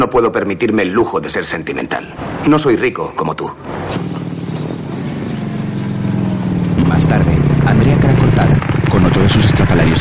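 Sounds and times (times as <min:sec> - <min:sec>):
speech: 0:00.0 - 0:04.2, 0:07.0 - 0:08.0, 0:09.3 - 0:09.9
motorcycle arriving: 0:03.6 - 0:09.9.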